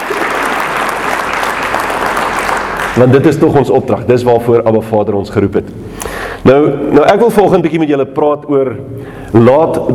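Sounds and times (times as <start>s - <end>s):
church congregation hand clapping: 0.0s - 3.6s
speech: 3.0s - 9.9s.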